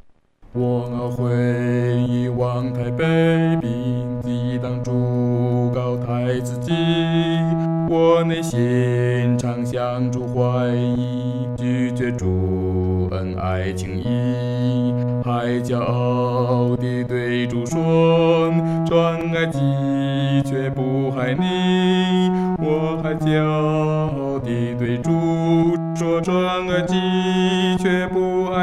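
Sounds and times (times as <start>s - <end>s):
solo singing: 0.5s - 28.6s.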